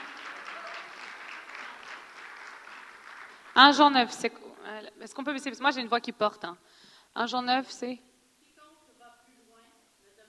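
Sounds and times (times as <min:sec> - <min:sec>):
audience applause: 0:00.0 - 0:03.8
speech: 0:03.6 - 0:08.1.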